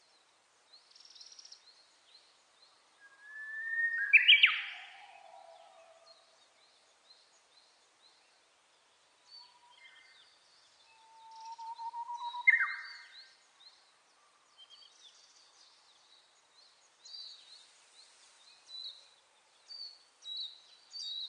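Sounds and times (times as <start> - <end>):
Japanese bush warbler song: 0.0 - 21.2.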